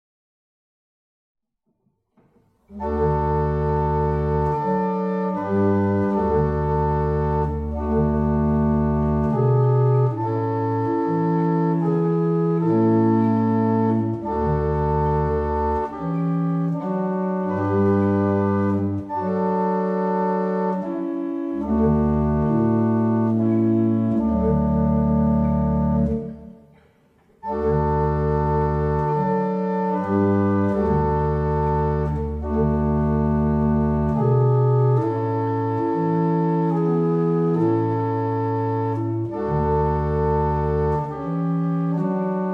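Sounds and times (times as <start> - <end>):
barrel organ playing a double chant: 2.7 - 26.5, 27.4 - 42.5.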